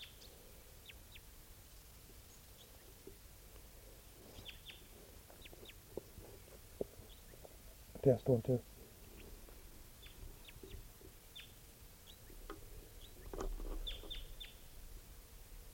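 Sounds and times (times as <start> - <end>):
wild bird calling: 4.1 - 7.6, 8.7 - 14.8
speech: 8.0 - 8.7.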